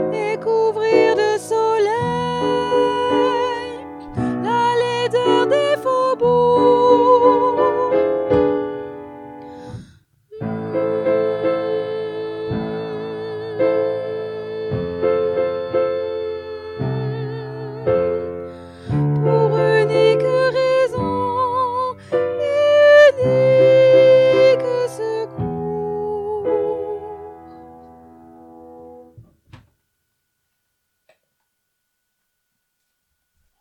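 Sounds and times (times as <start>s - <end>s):
tenor singing: 0.0s - 8.6s, 9.7s - 27.4s.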